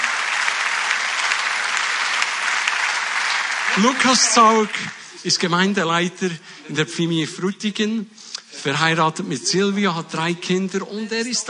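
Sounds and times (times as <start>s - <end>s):
warm audience applause: 0.0s - 5.7s
speech: 3.8s - 11.4s.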